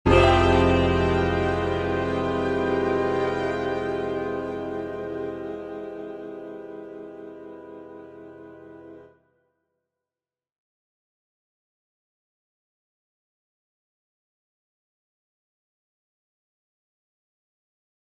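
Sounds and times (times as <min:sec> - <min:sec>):
spy chord: 0:00.0 - 0:09.1.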